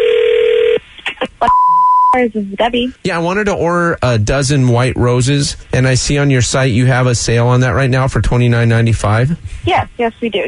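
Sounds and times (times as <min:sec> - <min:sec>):
telephone line tones: 0:00.0 - 0:00.8
speech: 0:01.4 - 0:10.4.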